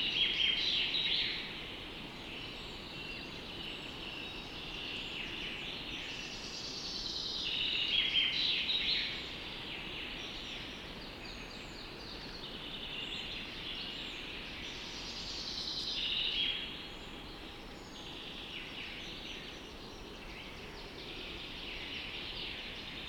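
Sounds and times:
pine forest ambience in Sweden: 0:00.0 - 0:23.0.

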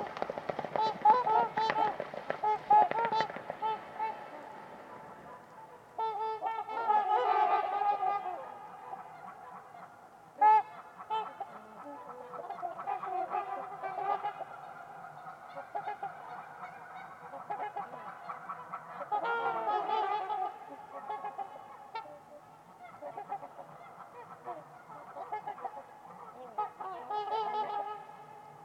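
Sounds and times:
trumpeter swans honking: 0:00.0 - 0:28.6.

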